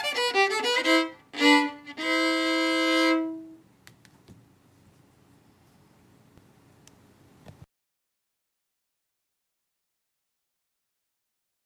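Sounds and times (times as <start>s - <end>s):
fiddle tune in six-eight time: 0.0s - 3.7s.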